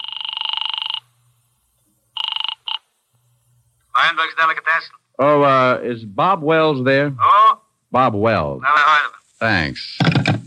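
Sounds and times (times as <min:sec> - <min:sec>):
telephone ringing on the other end of the line: 0:00.0 - 0:01.1, 0:02.2 - 0:02.9
speech: 0:04.1 - 0:10.1.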